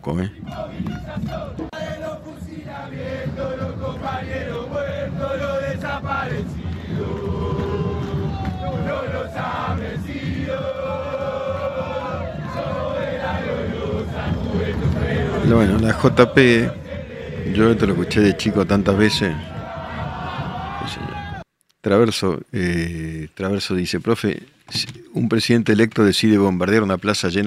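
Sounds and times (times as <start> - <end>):
speech: 0.0 - 7.6, 15.0 - 16.8, 17.5 - 19.5, 21.8 - 27.4
large street protest crowd chanting and shouting: 0.0 - 21.5.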